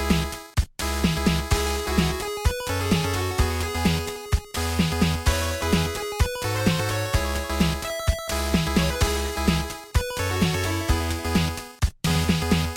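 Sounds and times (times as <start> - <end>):
music beat: 0.1 - 12.7.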